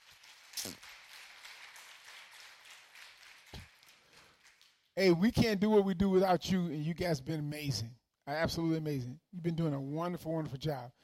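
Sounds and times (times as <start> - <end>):
audience clapping: 0.0 - 5.2
speech: 5.0 - 11.0.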